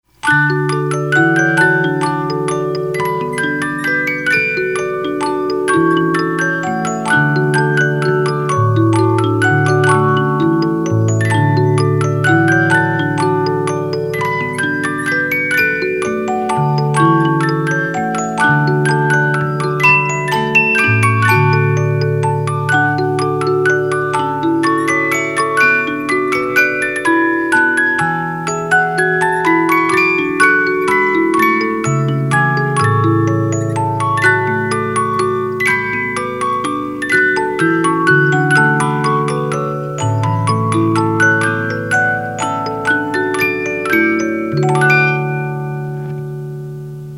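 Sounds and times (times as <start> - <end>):
50-note music box playing a minuet: 0.0 - 47.1.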